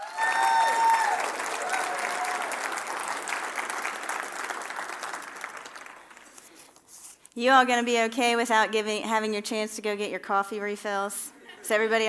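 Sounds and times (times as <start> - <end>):
audience applause: 0.0 - 6.5
speech: 7.4 - 12.0.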